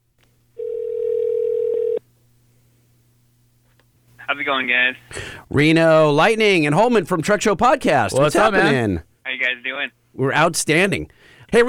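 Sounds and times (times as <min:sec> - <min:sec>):
telephone dialing tone: 0:00.6 - 0:02.0
speech: 0:04.4 - 0:11.6.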